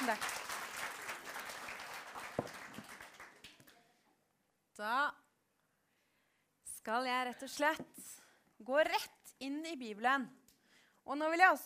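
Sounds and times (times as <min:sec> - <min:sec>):
audience applause: 0:00.0 - 0:03.6
speech: 0:00.1 - 0:00.4, 0:04.8 - 0:05.2, 0:06.8 - 0:10.4, 0:11.1 - 0:11.6.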